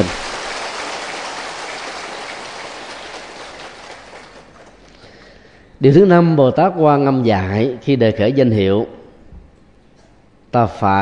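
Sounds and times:
audience applause: 0:00.0 - 0:04.8
speech: 0:05.8 - 0:09.0, 0:10.5 - 0:11.0.

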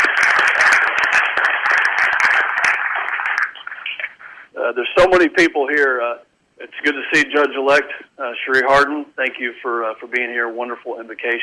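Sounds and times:
audience applause: 0:00.0 - 0:04.0
speech: 0:05.0 - 0:11.4.

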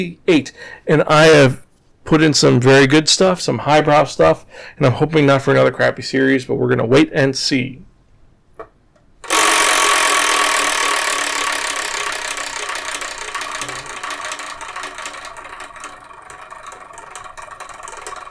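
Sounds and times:
speech: 0:00.0 - 0:07.9
ratcheting clicks of a numbered wheel being spun: 0:09.2 - 0:18.2.

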